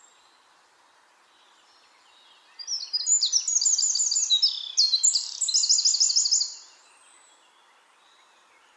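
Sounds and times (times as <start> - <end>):
Eurasian wren Troglodytes troglodytes singing: 1.4 - 8.3.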